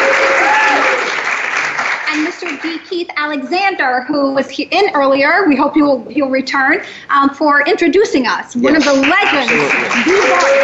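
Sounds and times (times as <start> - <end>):
crowd applause: 0.0 - 2.7, 8.7 - 10.6
speech: 2.9 - 10.6.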